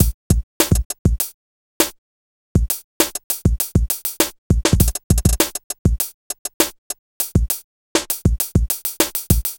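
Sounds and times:
music beat: 0.0 - 2.0, 2.6 - 9.5.

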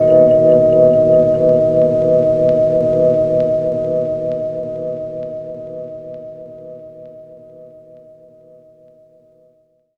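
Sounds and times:
Rhodes electric piano chord: 0.0 - 3.9.

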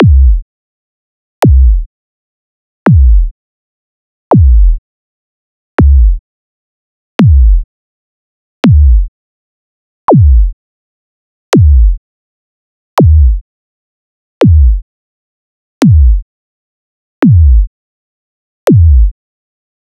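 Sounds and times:
subby kick drums: 0.0 - 0.4, 1.4 - 1.9, 2.9 - 3.3, 4.3 - 4.8, 5.8 - 6.2, 7.2 - 7.6, 8.6 - 9.1, 10.1 - 10.5, 11.6 - 12.0, 13.0 - 13.4, 14.4 - 14.8, 15.8 - 16.2, 17.2 - 17.7, 18.7 - 19.1.

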